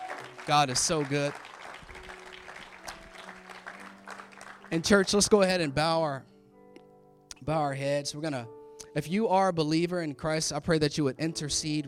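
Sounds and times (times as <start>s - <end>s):
audience hand clap of praise: 0.0s - 5.3s
speech: 0.5s - 1.6s, 4.7s - 6.3s, 7.4s - 11.8s.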